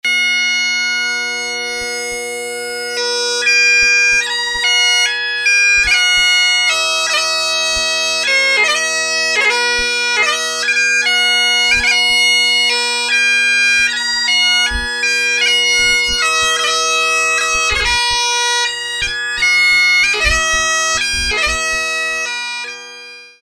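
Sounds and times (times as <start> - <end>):
bagpipe wedding waltz: 0.0 - 23.4.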